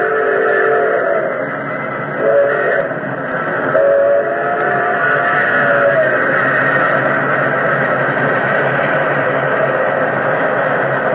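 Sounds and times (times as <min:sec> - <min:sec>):
droning horn-like tone: 0:00.0 - 0:01.4, 0:02.2 - 0:03.0, 0:03.7 - 0:07.2
express train engine roaring out of tunnel: 0:00.0 - 0:11.1.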